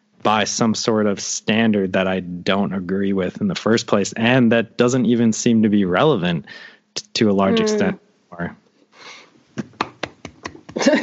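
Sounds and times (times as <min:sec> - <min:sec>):
speech: 0:00.2 - 0:09.1, 0:10.8 - 0:11.0
hand clapping: 0:09.6 - 0:10.9.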